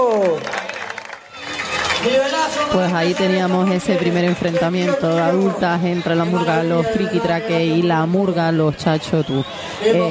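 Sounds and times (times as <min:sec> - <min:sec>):
audience applause: 0:00.0 - 0:07.3
speech: 0:02.5 - 0:10.0.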